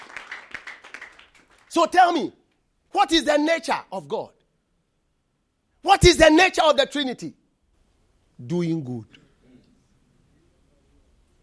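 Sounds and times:
audience clapping: 0:00.0 - 0:01.8
speech: 0:01.8 - 0:04.4, 0:05.8 - 0:07.4, 0:08.4 - 0:09.2.

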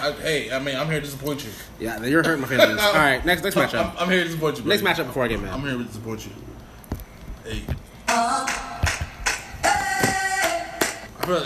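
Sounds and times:
speech: 0:00.0 - 0:06.5, 0:07.5 - 0:08.4, 0:11.3 - 0:11.4
hand claps: 0:08.1 - 0:11.4.

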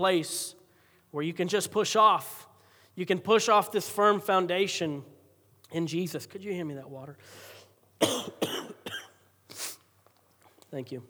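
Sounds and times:
speech: 0:00.0 - 0:08.6, 0:10.7 - 0:11.0
cough: 0:08.0 - 0:09.3.

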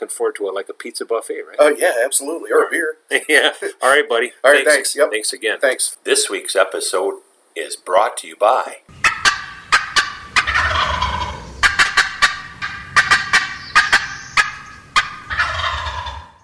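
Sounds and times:
speech: 0:00.0 - 0:09.0
laughter: 0:03.1 - 0:03.9
turkey gobble produced on a turkey call: 0:08.9 - 0:16.4.

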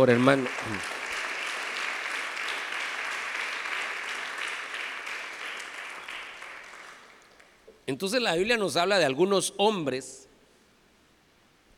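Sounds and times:
speech: 0:00.0 - 0:01.0, 0:07.9 - 0:10.3
audience applauding: 0:00.0 - 0:07.7.

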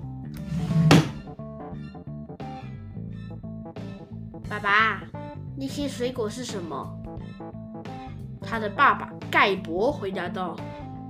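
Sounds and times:
door closing: 0:00.4 - 0:01.3
speech: 0:04.5 - 0:07.0, 0:08.5 - 0:10.8.

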